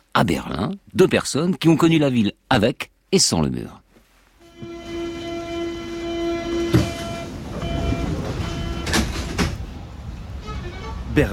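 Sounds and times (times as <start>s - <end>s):
speech: 0.2s - 3.8s
metro train rumbling in Berlin's Mitte district: 4.4s - 11.3s
clanks and rattles from the train cars: 6.7s - 9.7s.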